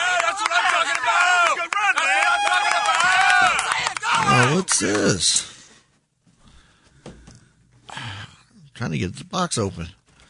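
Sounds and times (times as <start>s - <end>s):
group of men cheering: 0.0s - 5.2s
speech: 4.4s - 5.5s, 8.8s - 10.0s.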